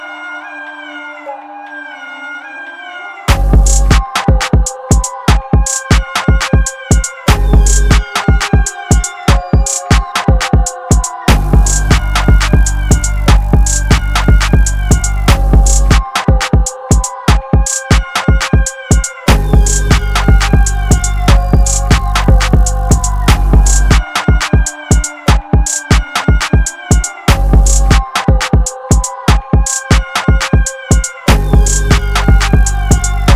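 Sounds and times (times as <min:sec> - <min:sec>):
loud drums: 0:03.3 - 0:33.3.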